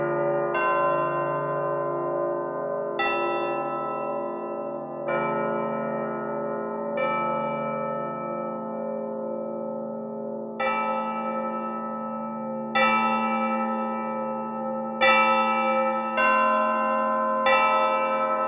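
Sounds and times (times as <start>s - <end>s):
bells in 17-tone equal temperament: 0.0s - 18.4s.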